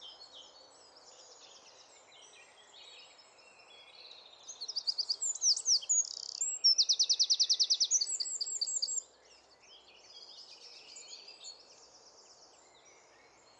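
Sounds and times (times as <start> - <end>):
Eurasian wren Troglodytes troglodytes singing: 4.5 - 9.0.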